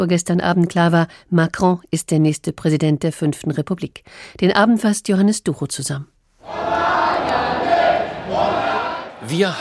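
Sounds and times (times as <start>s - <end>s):
speech: 0.0s - 7.4s, 9.2s - 9.6s
crowd chanting a victory cheer on Macron's election night: 6.4s - 9.6s.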